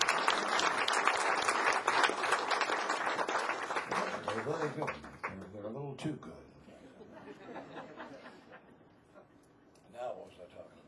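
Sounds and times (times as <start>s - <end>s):
light applause: 0.0s - 5.6s
speech: 4.4s - 5.2s, 6.0s - 6.5s
laughter: 6.8s - 9.4s.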